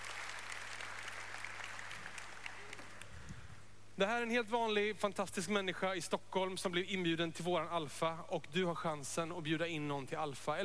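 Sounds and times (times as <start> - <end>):
audience applause: 0.0 - 3.2
speech: 4.0 - 10.6.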